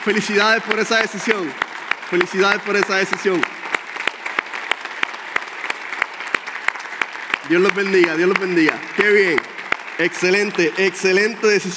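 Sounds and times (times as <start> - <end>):
speech: 0.0 - 3.7, 7.5 - 11.7
audience applause: 0.0 - 11.7.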